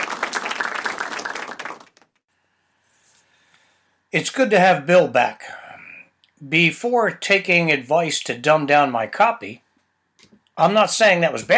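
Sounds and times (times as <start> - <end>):
golf clap: 0.0 - 2.2
speech: 4.1 - 5.6, 6.4 - 9.6, 10.6 - 11.5.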